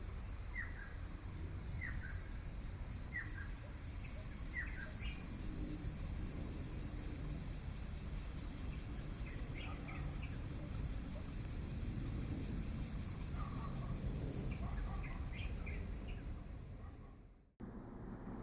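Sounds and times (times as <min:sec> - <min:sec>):
bright insect drone near Xizhi Balian creek valley: 0:00.0 - 0:18.1
low continuous rumble of water or distant traffic: 0:17.6 - 0:18.4.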